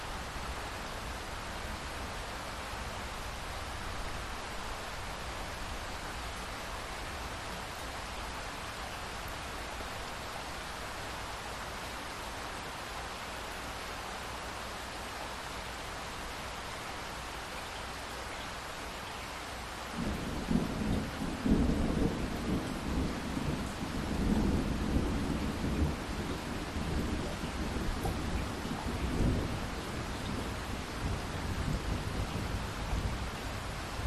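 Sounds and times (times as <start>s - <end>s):
light rain dripping after a thunderstorm: 0.0s - 34.0s
distant thunder rumbles: 20.0s - 33.2s.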